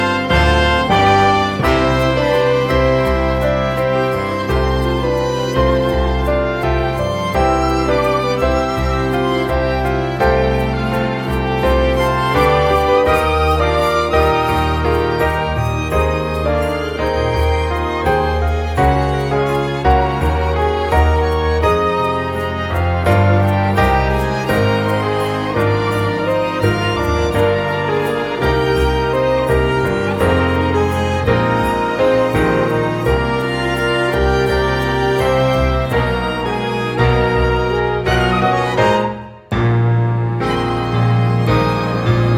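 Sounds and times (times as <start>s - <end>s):
instrumental music: 0.0s - 42.3s.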